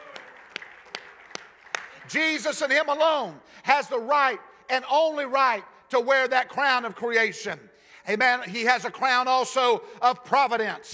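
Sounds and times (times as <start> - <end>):
audience clapping hands in unison: 0.0 - 2.9
speech: 2.1 - 10.9.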